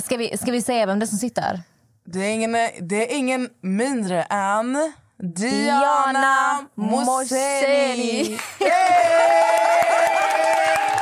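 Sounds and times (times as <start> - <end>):
speech: 0.0 - 10.9
hosts cheering and whooping: 8.2 - 10.9
hosts clapping: 8.2 - 10.9.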